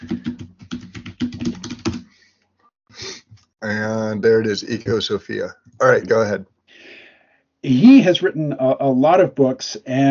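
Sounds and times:
typing on a computer keyboard: 0:00.0 - 0:02.1
speech: 0:03.6 - 0:06.5, 0:07.6 - 0:10.0.

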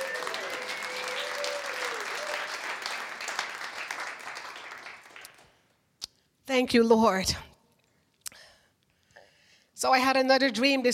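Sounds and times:
audience clapping applause: 0:00.0 - 0:05.5
speech: 0:06.6 - 0:07.5, 0:09.8 - 0:10.9.

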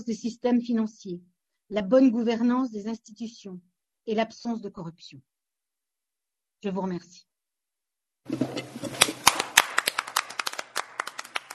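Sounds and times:
speech: 0:00.0 - 0:05.3, 0:06.6 - 0:07.3, 0:08.2 - 0:09.1
applause from a small group echoing in an empty hall: 0:09.0 - 0:11.5.

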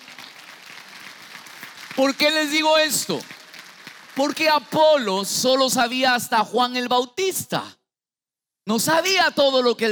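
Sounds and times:
audience applause: 0:00.0 - 0:05.1
speech: 0:02.0 - 0:03.4, 0:04.2 - 0:07.8, 0:08.7 - 0:09.9.

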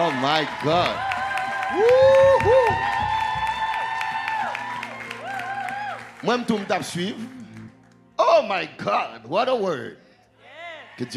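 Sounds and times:
speech: 0:00.0 - 0:01.1, 0:01.7 - 0:03.2, 0:06.2 - 0:07.4, 0:08.4 - 0:10.0, 0:11.0 - 0:11.1
audience applause and cheering: 0:00.0 - 0:08.7.

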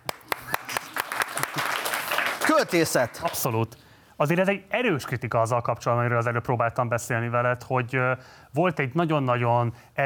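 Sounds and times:
small group applause: 0:00.0 - 0:03.5
speech: 0:02.6 - 0:10.0.

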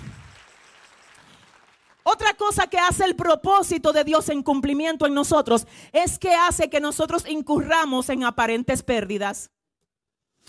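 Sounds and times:
applause: 0:00.0 - 0:02.6
speech: 0:02.2 - 0:09.6.

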